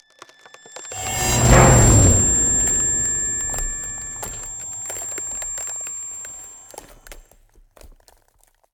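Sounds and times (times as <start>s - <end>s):
ice spell cold whooshes: 1.0s - 5.5s.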